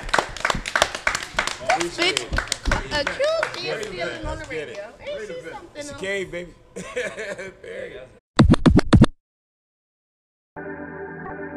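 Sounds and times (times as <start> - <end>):
round of applause: 0.0 - 4.8
voices talking and cheering: 1.5 - 6.6
laughter: 1.7 - 4.3, 6.8 - 8.1
speech: 1.8 - 8.2.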